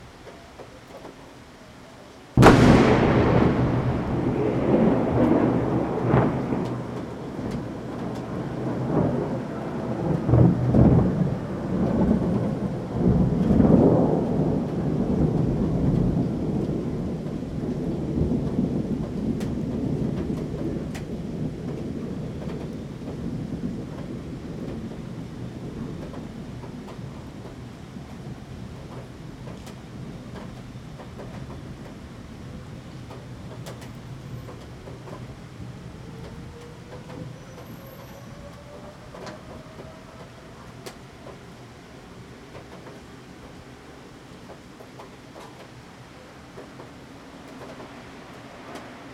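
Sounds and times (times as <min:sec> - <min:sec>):
close thunder: 0:02.4 - 0:31.9, 0:33.1 - 0:41.6.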